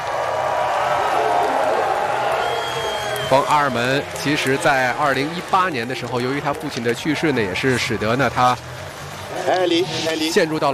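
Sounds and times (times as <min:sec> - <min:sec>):
spectators applauding: 0:00.0 - 0:08.5
speech: 0:03.3 - 0:08.7, 0:09.5 - 0:10.7.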